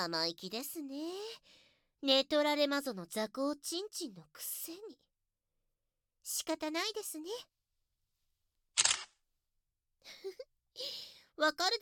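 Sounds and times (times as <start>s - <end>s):
speech: 0.0s - 5.1s, 6.3s - 7.5s, 10.0s - 11.8s
camera shutter click taking a photo: 8.8s - 9.1s.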